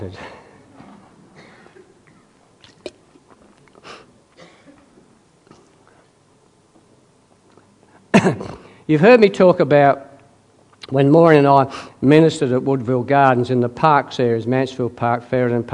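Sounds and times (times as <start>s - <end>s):
speech: 0.0s - 0.4s, 8.2s - 10.1s, 10.9s - 15.7s
person drinking water: 2.6s - 4.2s.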